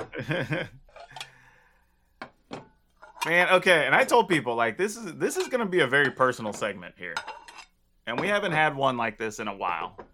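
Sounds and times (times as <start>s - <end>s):
speech: 0.2s - 0.8s, 3.2s - 7.4s, 8.0s - 10.1s
plates and dishes clattering: 0.8s - 1.4s, 2.2s - 3.4s, 5.4s - 8.4s.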